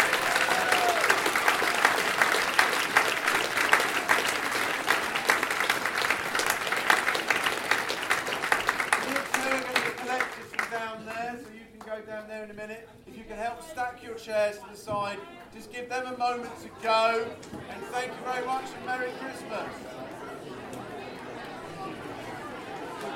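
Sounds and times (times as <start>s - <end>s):
audience applause: 0.0s - 11.2s, 19.5s - 23.1s
speech: 14.2s - 20.0s.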